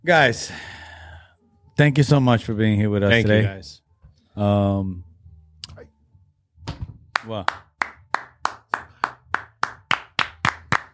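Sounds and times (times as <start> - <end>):
speech: 0.0 - 0.8, 1.8 - 3.8, 4.4 - 5.1, 6.7 - 7.6
hands clapping: 7.1 - 10.9.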